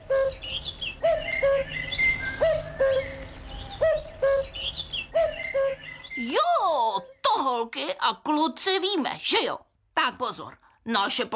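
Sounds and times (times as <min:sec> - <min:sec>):
cuckoo calling: 0:00.0 - 0:07.6
speech: 0:08.1 - 0:11.3.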